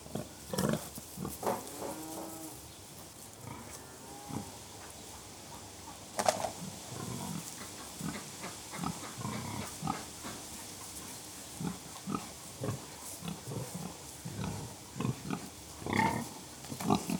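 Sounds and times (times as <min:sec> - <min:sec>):
several pigs grunting: 0:00.0 - 0:02.6, 0:06.5 - 0:10.4, 0:11.5 - 0:17.1.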